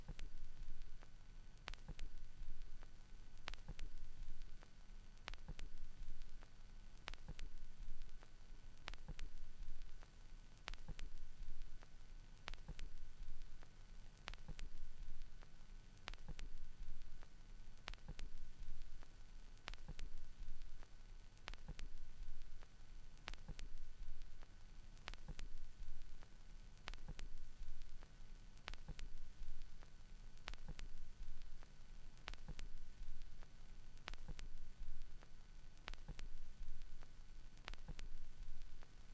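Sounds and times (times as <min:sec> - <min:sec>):
vinyl record noise: 0:00.0 - 0:39.1.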